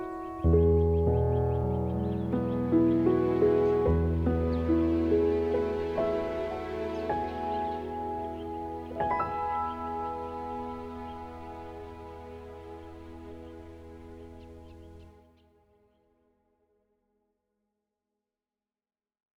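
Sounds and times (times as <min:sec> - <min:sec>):
Petrof grand piano: 0:00.0 - 0:15.2.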